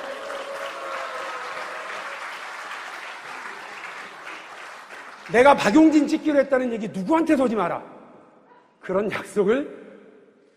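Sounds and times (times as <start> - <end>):
audience applause: 0.0 - 6.0
speech: 5.3 - 8.0, 8.8 - 9.8.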